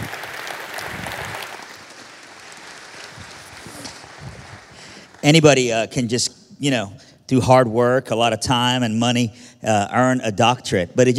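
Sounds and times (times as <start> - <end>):
audience applause welcoming a speaker to the stage: 0.0 - 5.4
speech: 5.2 - 11.1.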